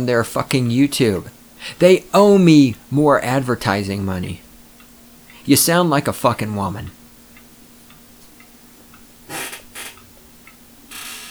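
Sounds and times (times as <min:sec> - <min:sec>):
speech: 0:00.0 - 0:04.4, 0:05.5 - 0:07.0
chair squeaking as someone leans forward: 0:09.2 - 0:10.2, 0:10.9 - 0:11.2.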